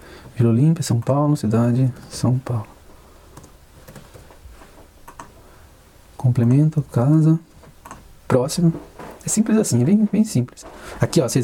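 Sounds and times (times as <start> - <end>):
low steady hiss: 0.0 - 11.4
speech: 0.4 - 2.8, 6.3 - 7.5, 8.3 - 11.4
computer keyboard typing: 3.3 - 4.3, 5.1 - 5.3.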